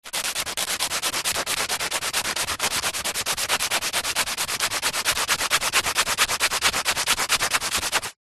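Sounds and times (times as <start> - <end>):
industrial sandpaper small rubs on wood: 0.0 - 8.2.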